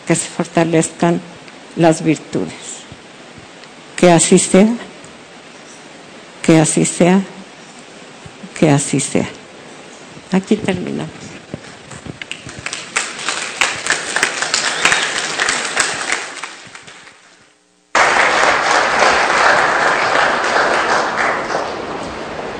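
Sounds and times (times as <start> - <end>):
speech: 0.1 - 2.6, 4.0 - 4.8, 6.5 - 7.3, 8.6 - 9.4, 10.3 - 11.3
crowd applauding: 12.2 - 22.5.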